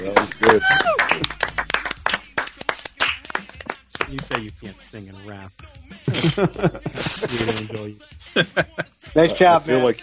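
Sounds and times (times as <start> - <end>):
applause: 0.0 - 4.6
speech: 0.5 - 1.0, 4.1 - 10.0
laughter: 5.9 - 9.7.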